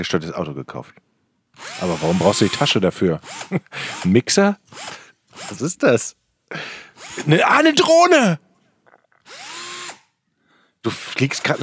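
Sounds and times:
speech: 0.0s - 8.4s, 10.8s - 11.6s
cordless screwdriver motor whirring: 1.6s - 5.7s, 7.0s - 7.4s, 9.2s - 10.2s, 11.2s - 11.6s.

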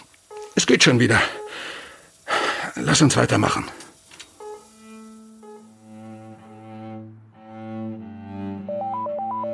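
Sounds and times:
speech: 0.7s - 1.4s, 2.8s - 3.8s
low bowed string notes: 4.4s - 9.5s
electronic telephone ringing: 8.8s - 9.5s.

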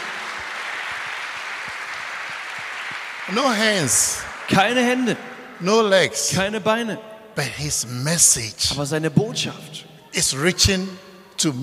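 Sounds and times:
church congregation applauding: 0.0s - 6.5s
speech: 3.3s - 11.6s.

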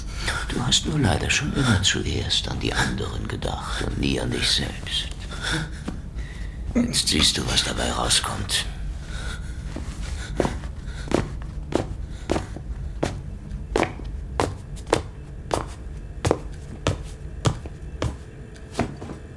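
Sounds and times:
low rumbling background: 0.0s - 19.3s
speech: 0.5s - 6.0s, 6.8s - 8.7s
footsteps entering a narrow kitchen: 9.0s - 19.3s.

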